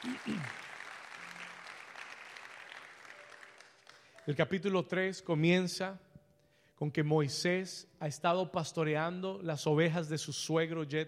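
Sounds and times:
audience applauding: 0:00.0 - 0:04.5
speech: 0:04.2 - 0:06.1, 0:06.8 - 0:11.0.

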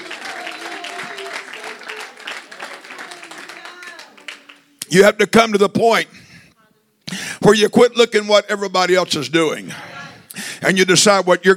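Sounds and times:
audience clapping and applause: 0:00.0 - 0:05.0
speech: 0:04.9 - 0:06.2, 0:07.5 - 0:09.9, 0:10.6 - 0:11.5.

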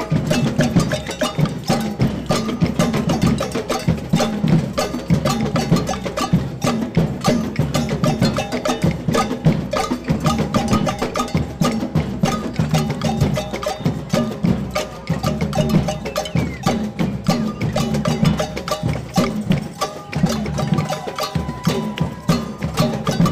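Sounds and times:
drums pounding on a street during a student protest in Montreal: 0:00.0 - 0:23.3
metal percussion clanking: 0:00.0 - 0:23.3
crowd murmur: 0:14.0 - 0:23.3.

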